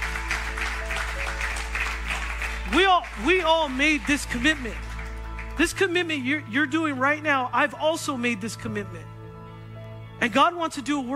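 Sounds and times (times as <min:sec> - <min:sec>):
audience clapping in a large room: 0:00.0 - 0:06.2
speech: 0:02.7 - 0:04.9, 0:05.6 - 0:09.1, 0:10.2 - 0:11.1.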